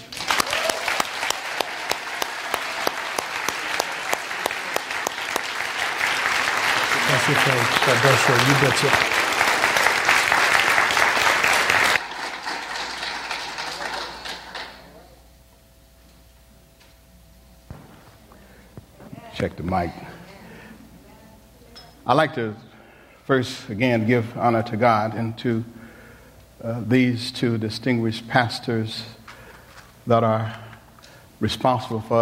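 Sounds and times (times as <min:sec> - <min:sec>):
audience applause for a pastor: 0:00.0 - 0:15.1
speech: 0:07.2 - 0:09.2, 0:19.4 - 0:20.1, 0:22.1 - 0:22.7, 0:23.3 - 0:25.8, 0:26.6 - 0:29.2, 0:30.1 - 0:30.6, 0:31.4 - 0:32.2.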